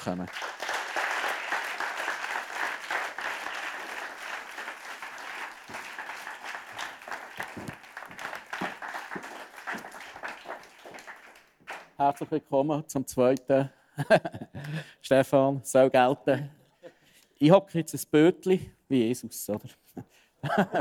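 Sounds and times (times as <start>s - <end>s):
speech: 0.0s - 0.6s, 12.0s - 16.6s, 17.4s - 20.7s
audience applause: 0.0s - 12.0s
laughter: 14.0s - 14.8s, 19.7s - 20.7s.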